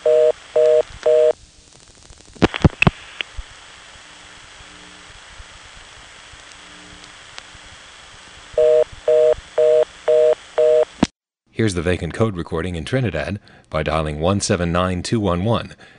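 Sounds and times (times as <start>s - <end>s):
telephone reorder tone from a 4ESS switch: 0.0s - 1.3s, 8.6s - 10.9s
speech: 11.6s - 15.9s.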